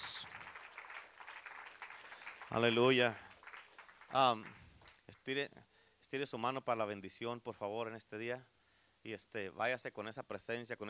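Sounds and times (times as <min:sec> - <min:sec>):
audience applause: 0:00.0 - 0:05.0
speech: 0:02.5 - 0:03.2, 0:04.1 - 0:10.8.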